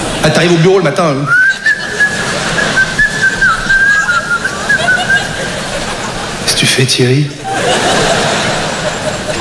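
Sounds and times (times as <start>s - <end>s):
speech: 0.2s - 1.7s, 6.8s - 7.9s
person whistling a tune: 1.3s - 5.2s
laughter: 1.3s - 6.4s, 7.3s - 9.3s.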